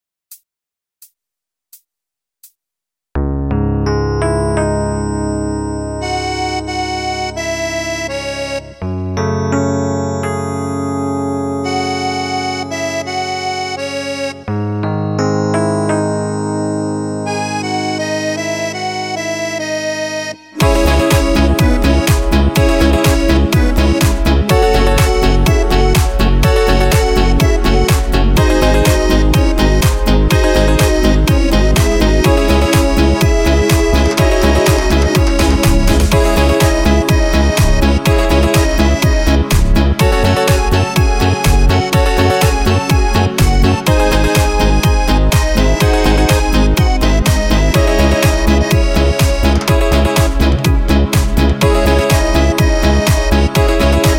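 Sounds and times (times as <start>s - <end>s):
song with voice on Korg Pa800s keyboard: 3.2s - 54.1s.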